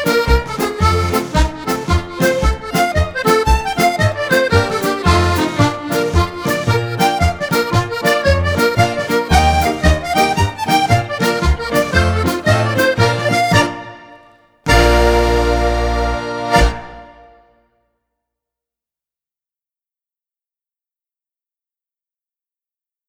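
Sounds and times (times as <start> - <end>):
jig music sample: 0.0 - 17.4.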